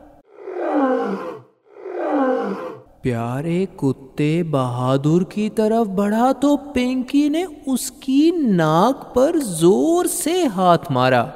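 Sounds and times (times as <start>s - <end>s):
lion roaring: 0.2s - 2.9s
speech: 3.0s - 11.3s.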